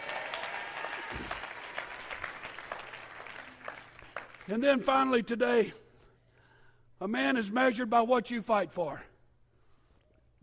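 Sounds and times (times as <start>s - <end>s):
audience clapping hands: 0.0s - 4.8s
speech: 4.5s - 5.8s, 7.0s - 9.1s.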